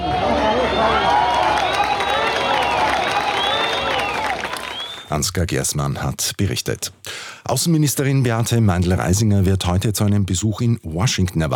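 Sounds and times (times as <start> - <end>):
crowd cheering at rescue site between rubble heaps: 0.0 - 5.3
speech: 5.1 - 11.5.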